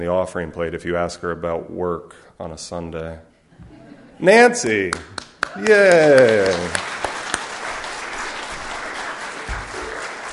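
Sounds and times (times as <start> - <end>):
speech: 0.0 - 6.9
audience applause: 4.9 - 10.3.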